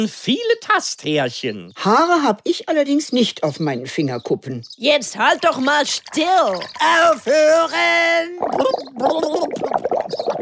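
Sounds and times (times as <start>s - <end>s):
speech: 0.0s - 10.4s
gurgling while swallowing water underwater: 5.2s - 10.4s.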